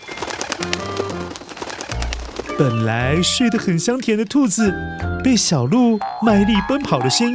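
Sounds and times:
birds rapidly flapping their wings: 0.0 - 4.2
speech: 2.6 - 7.3.

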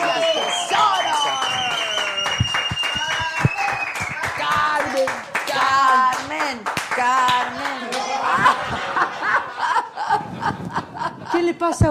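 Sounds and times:
applause: 0.0 - 8.1
laughter: 7.5 - 11.8
speech: 11.4 - 11.8.

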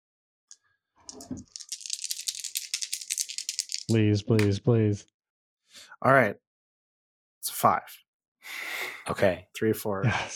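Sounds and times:
speech: 1.1 - 1.7, 3.9 - 5.2, 5.8 - 6.4, 7.4 - 10.3
dice clattering and rattling: 1.1 - 4.0.

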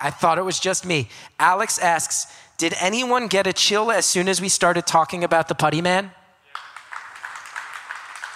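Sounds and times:
speech: 0.0 - 6.2
scattered applause from part of an audience: 6.4 - 8.3.

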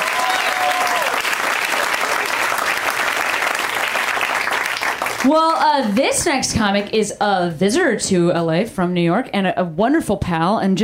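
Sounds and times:
crowd applauding: 0.0 - 6.1
speech: 5.2 - 10.8.

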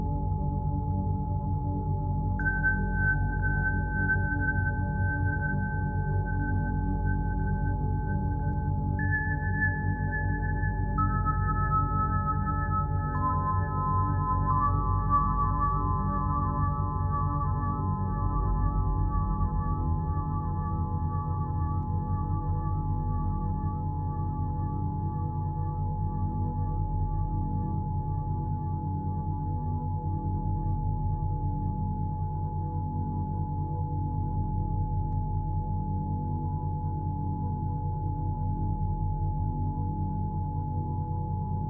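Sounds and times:
thick constant low hum: 0.0 - 41.6
852Hz solfeggio tones: 2.4 - 19.6.

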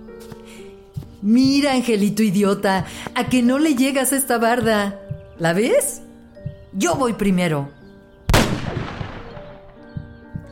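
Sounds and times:
speech: 1.2 - 6.1, 6.8 - 7.8
gunshot fired at a target on a wall on a farm: 8.3 - 9.9.

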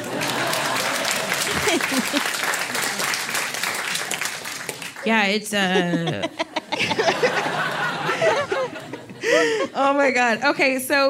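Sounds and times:
laughter: 0.0 - 3.3, 5.6 - 9.8
applause from a group of people: 0.0 - 5.2
speech: 1.8 - 2.3, 5.0 - 6.5, 9.3 - 11.0.

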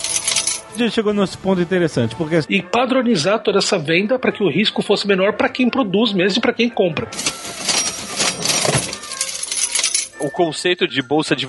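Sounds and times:
cash register sound effect: 0.0 - 0.8, 7.1 - 10.6
speech: 0.8 - 7.4, 10.2 - 11.4.

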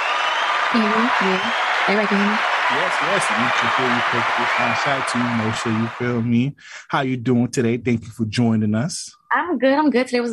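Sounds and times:
audience applause: 0.0 - 6.5
speech: 0.7 - 10.3
laughter: 0.8 - 9.1.

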